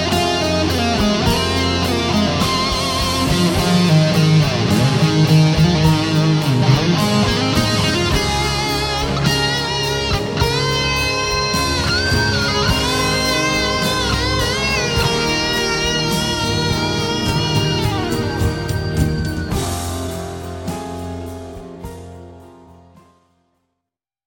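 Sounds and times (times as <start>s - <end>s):
Strat guitar solo with EMG pickups through a Muff fuzz: 0.0s - 20.7s.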